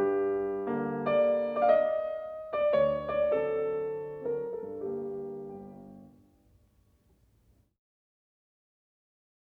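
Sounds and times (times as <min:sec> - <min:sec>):
piano mazurka in G minor: 0:00.0 - 0:06.6.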